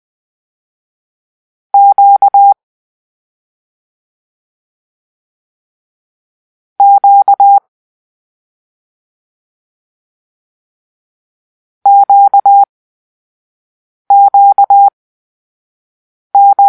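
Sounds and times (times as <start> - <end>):
morse code for the letter Q: 1.8 - 2.6, 6.8 - 7.6, 11.9 - 12.7, 14.1 - 14.9, 16.4 - 16.6.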